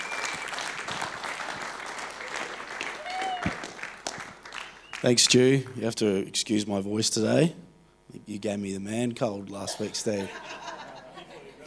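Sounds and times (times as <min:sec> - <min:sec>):
audience applause welcoming a speaker at a Father's Day gathering: 0:00.0 - 0:05.2
speech: 0:05.0 - 0:10.7
laughter: 0:09.6 - 0:11.6.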